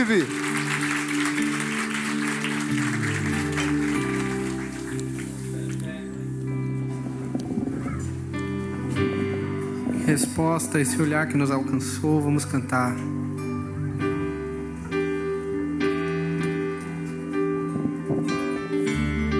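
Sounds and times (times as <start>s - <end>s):
speech: 0.0s - 0.5s, 10.1s - 13.1s
audience applause: 0.0s - 5.9s
organ-like keyboard chords: 0.0s - 19.3s.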